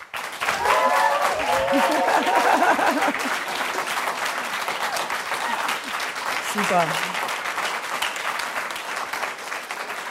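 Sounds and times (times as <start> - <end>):
audience applause: 0.0 - 10.0
laughter: 0.6 - 3.9
speech: 6.6 - 7.2.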